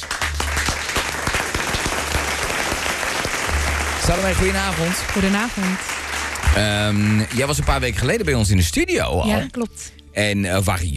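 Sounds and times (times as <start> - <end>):
studio applause: 0.0 - 8.5
speech: 4.0 - 5.9, 6.6 - 10.9.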